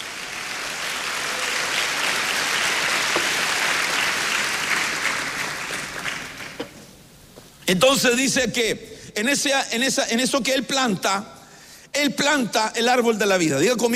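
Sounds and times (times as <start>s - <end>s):
audience clapping hands: 0.0s - 6.9s
speech: 7.7s - 11.4s, 12.0s - 13.9s.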